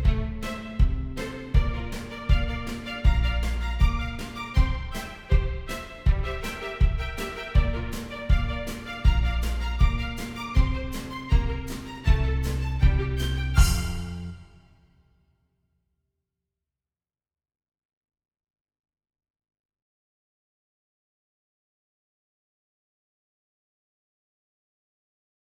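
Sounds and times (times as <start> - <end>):
horns in fifths: 0.1 - 14.6.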